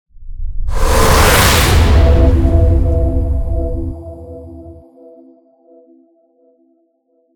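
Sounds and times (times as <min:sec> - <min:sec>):
transition sound: 0:00.2 - 0:04.8.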